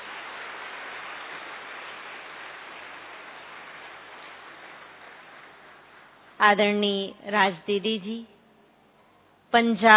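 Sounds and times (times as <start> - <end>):
audience applause: 0.0 - 6.3
speech: 6.4 - 8.3, 9.5 - 9.9.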